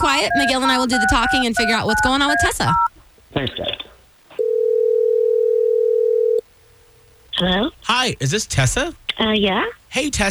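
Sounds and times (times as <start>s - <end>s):
telephone ringing tone while a call is placed: 0.0s - 2.9s, 4.4s - 6.4s
speech: 0.2s - 3.8s, 7.4s - 10.3s.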